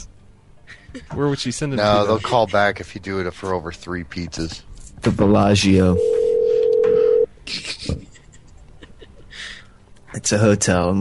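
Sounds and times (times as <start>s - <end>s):
speech: 0.9s - 6.2s, 10.2s - 10.9s
telephone dial tone: 6.0s - 7.3s.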